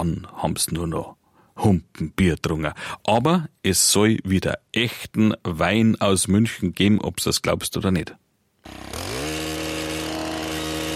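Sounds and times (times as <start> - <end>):
speech: 0.0 - 9.0
engine-driven earth auger drilling into hard dry stony ground in western Munich: 8.6 - 10.9.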